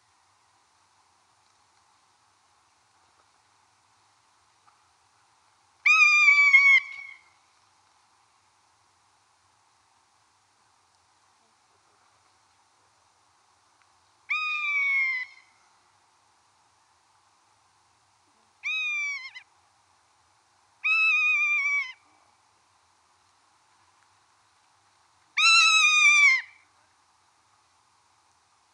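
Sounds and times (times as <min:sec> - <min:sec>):
rough-legged buzzard call: 0:05.8 - 0:07.3, 0:14.3 - 0:15.5, 0:18.6 - 0:19.4, 0:20.8 - 0:22.0, 0:25.4 - 0:26.6.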